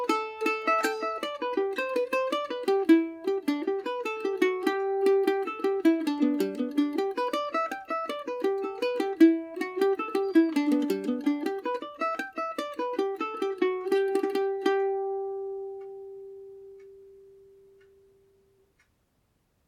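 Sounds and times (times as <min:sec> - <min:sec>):
Irish mandolin playing a jig in G major: 0:00.0 - 0:18.3.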